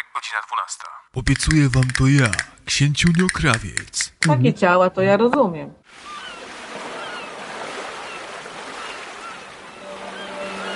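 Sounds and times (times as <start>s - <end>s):
speech: 0.2s - 6.1s
sea waves rushing: 5.9s - 10.7s.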